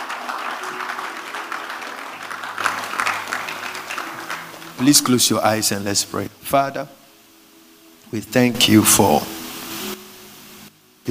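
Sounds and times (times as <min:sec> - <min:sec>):
audience applause: 0:00.0 - 0:05.8
speech: 0:04.8 - 0:07.0, 0:08.1 - 0:09.3.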